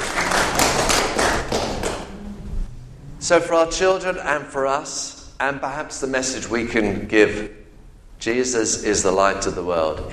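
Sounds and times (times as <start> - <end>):
audience applause: 0.0 - 2.1
speech: 3.3 - 7.6, 8.2 - 10.1.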